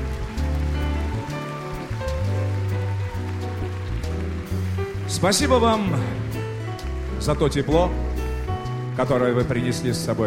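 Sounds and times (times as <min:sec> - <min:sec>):
loud applause in a hall: 0:00.0 - 0:08.0
speech: 0:05.1 - 0:06.2, 0:07.2 - 0:08.0, 0:09.0 - 0:10.2.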